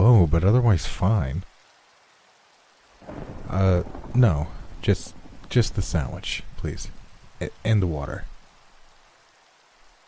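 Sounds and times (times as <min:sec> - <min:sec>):
rain falling: 0:00.0 - 0:10.0
speech: 0:00.3 - 0:01.5, 0:03.5 - 0:08.3.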